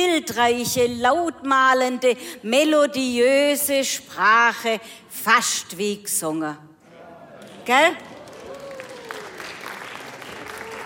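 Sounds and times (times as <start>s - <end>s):
speech: 0.0s - 6.7s, 7.7s - 8.1s
sparse audience applause: 8.0s - 10.8s.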